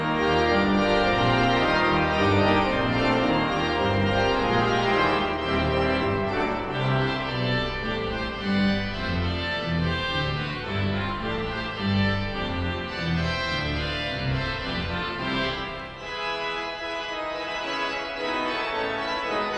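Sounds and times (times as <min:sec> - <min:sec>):
organ fanfare: 0:00.0 - 0:19.5.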